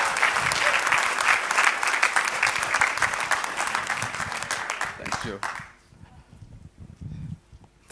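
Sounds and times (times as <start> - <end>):
congregation applause welcoming a preacher at a church conference session: 0.0 - 5.8.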